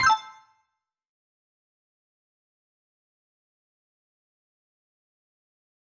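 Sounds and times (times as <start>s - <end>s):
confirmation tones: 0.0s - 0.4s.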